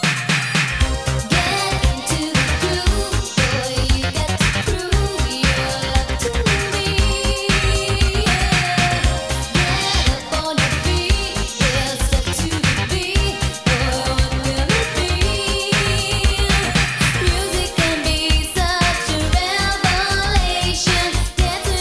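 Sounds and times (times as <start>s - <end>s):
groove music: 0.0s - 21.8s.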